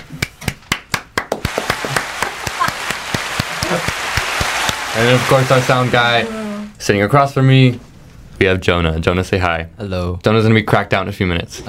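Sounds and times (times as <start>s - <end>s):
applause: 0.7s - 6.0s
speech: 5.0s - 11.6s.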